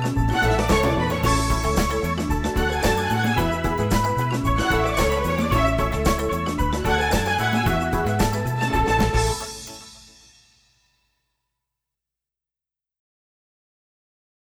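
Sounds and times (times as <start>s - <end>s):
karaoke singing: 0.0s - 9.6s.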